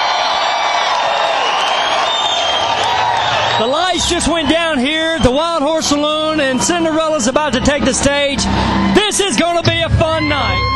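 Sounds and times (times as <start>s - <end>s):
people clapping: 0.0s - 5.9s
concert crowd cheering: 0.0s - 10.7s
speech: 3.6s - 10.7s.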